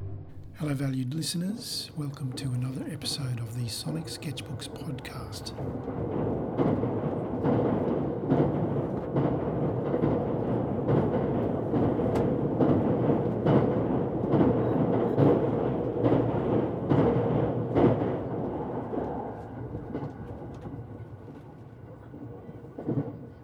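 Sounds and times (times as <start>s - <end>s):
Shinkansen bullet train crossing a bridge between Kyoto and Kanazawa: 0.3s - 23.4s
speech: 0.7s - 6.9s.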